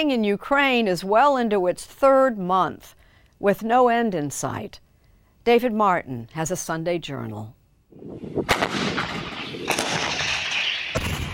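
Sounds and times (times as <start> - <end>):
speech: 0.0 - 4.8, 5.4 - 8.9
artillery fire: 8.1 - 11.3.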